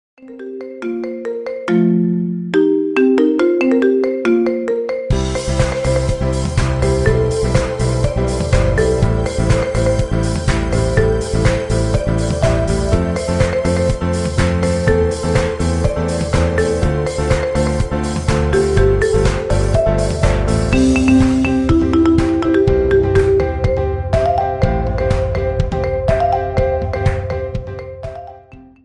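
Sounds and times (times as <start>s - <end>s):
marimba ringtone remix: 0.2s - 28.8s.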